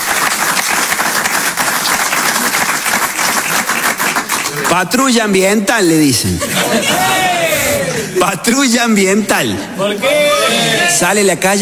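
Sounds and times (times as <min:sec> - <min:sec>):
audience applause: 0:00.0 - 0:05.0
speech: 0:04.7 - 0:07.2, 0:08.2 - 0:11.6
laughter: 0:06.1 - 0:08.4.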